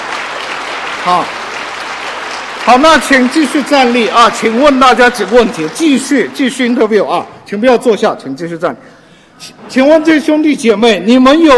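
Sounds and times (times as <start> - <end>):
audience applauding: 0.0 - 7.2
speech: 1.0 - 1.4, 2.6 - 11.5.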